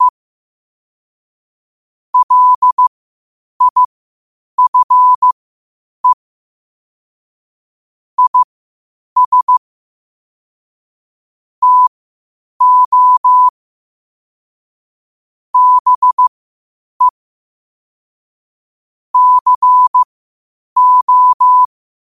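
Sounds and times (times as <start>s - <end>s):
morse code beeps at 5 wpm: 2.2s - 2.9s, 3.6s - 3.9s, 4.6s - 5.4s, 8.2s - 8.5s, 9.2s - 9.6s, 11.6s - 11.9s, 12.6s - 13.5s, 15.6s - 16.3s, 19.2s - 20.1s, 20.8s - 21.7s.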